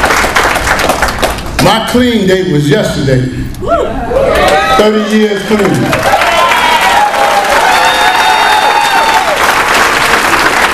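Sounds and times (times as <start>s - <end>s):
audience applause: 0.0s - 1.5s, 5.5s - 10.7s
speech: 1.7s - 6.2s
whistles and cheering: 6.2s - 9.4s.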